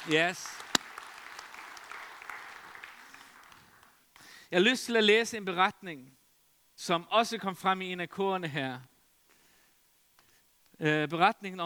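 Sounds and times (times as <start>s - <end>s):
speech: 0.0s - 0.6s, 4.5s - 6.2s, 6.8s - 8.9s, 10.8s - 11.6s
audience applause: 0.0s - 4.0s.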